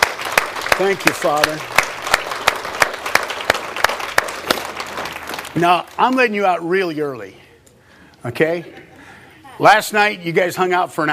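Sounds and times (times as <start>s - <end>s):
audience hand clapping: 0.0s - 6.4s
speech: 0.8s - 1.8s, 5.5s - 7.4s, 8.2s - 8.9s, 9.6s - 11.1s.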